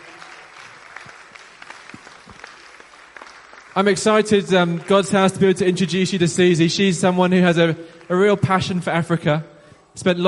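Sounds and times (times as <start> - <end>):
audience clapping: 0.0 - 5.9
speech: 3.8 - 10.2.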